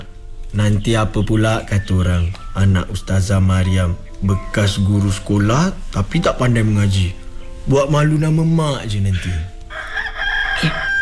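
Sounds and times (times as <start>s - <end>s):
speech: 0.5s - 9.5s, 10.6s - 10.9s
rooster crowing: 9.7s - 11.0s.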